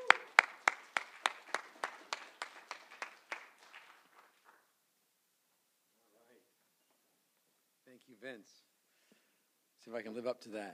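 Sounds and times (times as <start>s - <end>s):
audience applause welcoming a speaker to the stage: 0.0s - 4.7s
speech: 8.0s - 8.7s, 9.8s - 10.7s.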